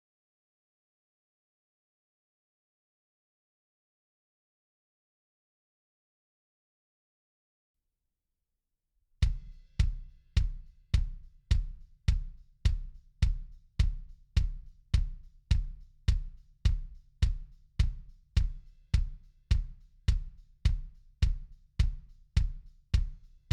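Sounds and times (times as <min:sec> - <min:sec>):
kick drum: 0:09.2 - 0:23.5.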